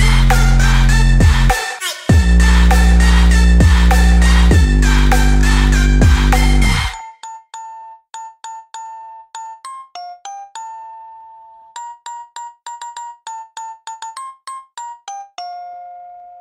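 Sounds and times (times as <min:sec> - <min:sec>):
nightcore Christmas song: 0:00.0 - 0:07.2.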